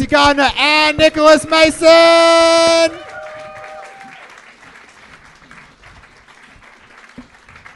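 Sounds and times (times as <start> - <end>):
speech: 0.0 - 3.0
crowd applauding: 2.4 - 7.7.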